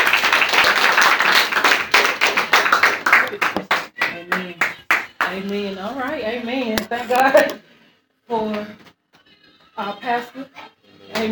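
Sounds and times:
audience hand clapping: 0:00.0 - 0:05.4
speech: 0:06.2 - 0:07.5, 0:09.8 - 0:10.6.

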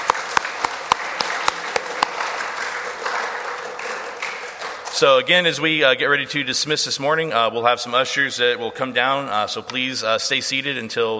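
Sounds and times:
audience applause: 0:00.0 - 0:05.2
sharp individual claps: 0:00.0 - 0:05.2
speech: 0:05.0 - 0:11.1.

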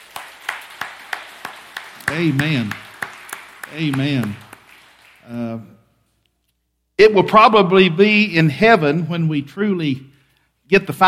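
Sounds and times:
audience clapping hands in praise: 0:00.0 - 0:05.6
speech: 0:02.1 - 0:02.8, 0:03.7 - 0:04.4, 0:05.3 - 0:05.8, 0:07.0 - 0:10.1, 0:10.7 - 0:11.0.

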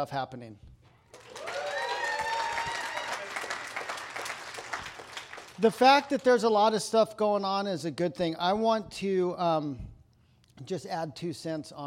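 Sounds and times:
speech: 0:00.0 - 0:00.7, 0:05.6 - 0:09.9, 0:10.6 - 0:11.8
cheers and whoops: 0:01.2 - 0:04.2
audience applause: 0:01.2 - 0:05.6.

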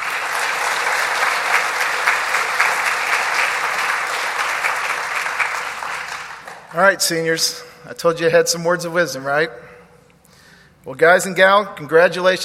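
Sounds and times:
audience round of applause: 0:00.0 - 0:06.8
speech: 0:06.8 - 0:09.7, 0:10.8 - 0:12.4.

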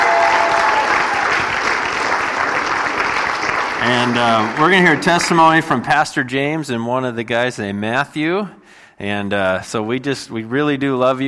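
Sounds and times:
church congregation applauding: 0:00.0 - 0:05.9
speech: 0:03.8 - 0:11.2.

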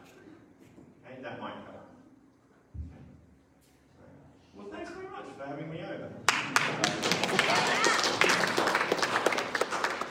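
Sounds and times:
audience clapping: 0:06.3 - 0:10.0.

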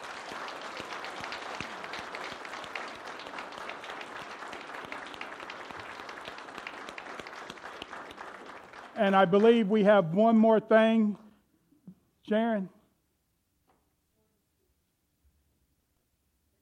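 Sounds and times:
audience applause for the choir: 0:00.0 - 0:09.8
speech: 0:09.0 - 0:11.2, 0:12.3 - 0:12.8.

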